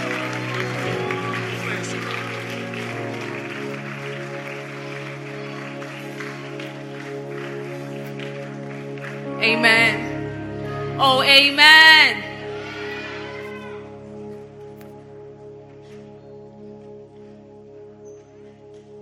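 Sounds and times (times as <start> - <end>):
crowd clapping: 0.0 - 10.0
speech: 9.4 - 10.0, 11.0 - 12.2.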